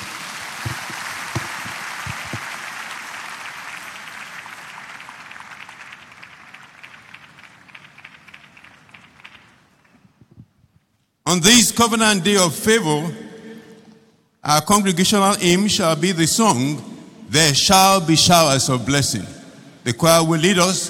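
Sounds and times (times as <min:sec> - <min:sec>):
church congregation applauding for the Lord during a service: 0:00.0 - 0:10.3
speech: 0:11.3 - 0:13.2, 0:14.4 - 0:20.8.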